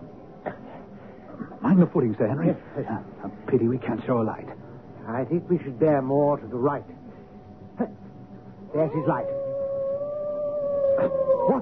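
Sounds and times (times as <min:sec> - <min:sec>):
speech: 0:01.7 - 0:07.0, 0:07.8 - 0:08.0, 0:08.7 - 0:09.4, 0:11.0 - 0:11.6
hound howling on the moor, radio drama sound effect: 0:08.7 - 0:11.6
man calling out: 0:08.8 - 0:09.3.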